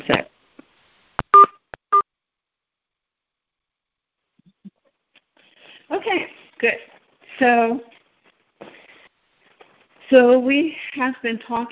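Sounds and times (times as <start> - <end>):
speech: 0.0 - 0.3, 6.0 - 8.0, 10.1 - 11.7
conference call entering and exiting beeps: 1.4 - 2.0.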